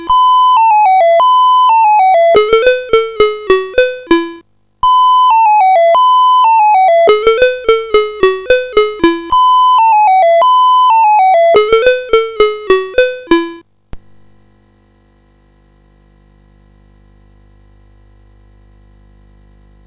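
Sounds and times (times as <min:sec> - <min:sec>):
musette: 0:00.0 - 0:04.4, 0:05.2 - 0:13.6.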